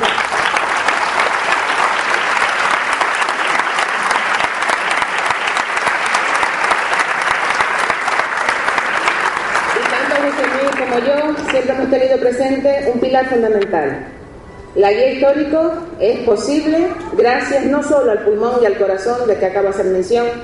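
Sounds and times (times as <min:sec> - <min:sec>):
audience applause: 0:00.0 - 0:11.7
speech: 0:12.3 - 0:14.2, 0:14.8 - 0:20.4.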